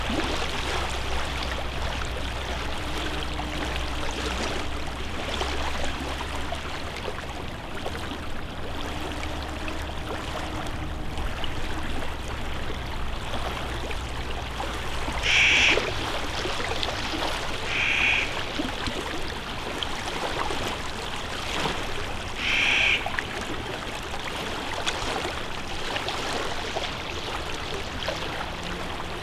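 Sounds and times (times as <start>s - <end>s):
lake waves lapping on a lakeshore: 0.0s - 29.2s
crow cawing: 15.2s - 15.8s, 17.7s - 18.4s, 22.4s - 23.0s.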